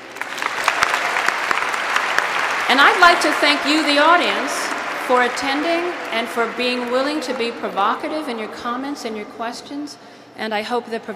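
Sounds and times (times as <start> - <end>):
audience applause for faculty presenters: 0.0 - 8.2
speech: 2.7 - 11.1.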